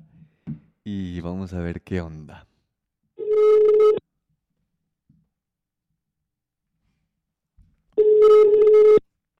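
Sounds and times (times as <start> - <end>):
speech: 0.9 - 2.5
ringback tone on an outgoing telephone call: 3.2 - 4.0, 8.0 - 9.0.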